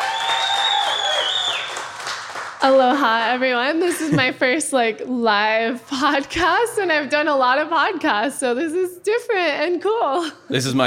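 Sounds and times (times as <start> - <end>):
audience applause: 0.0 - 2.6
sustained high whistle-like tone: 0.1 - 1.7
speech: 2.6 - 10.8.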